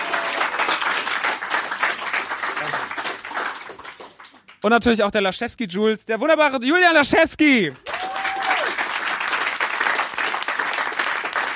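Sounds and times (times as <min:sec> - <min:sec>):
applause: 0:00.0 - 0:04.9, 0:07.6 - 0:11.5
speech: 0:04.6 - 0:07.8.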